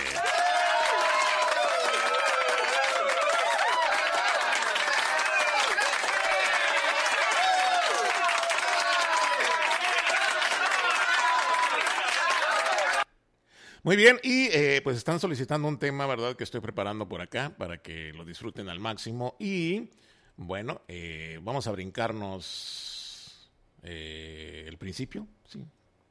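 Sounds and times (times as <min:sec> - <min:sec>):
large crowd applauding: 0:00.0 - 0:13.1
speech: 0:13.8 - 0:22.9, 0:23.8 - 0:25.8.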